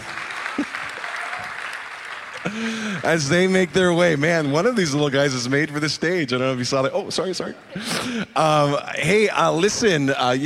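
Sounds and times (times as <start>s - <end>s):
audience applauding: 0.0s - 5.0s
speech: 2.4s - 10.4s.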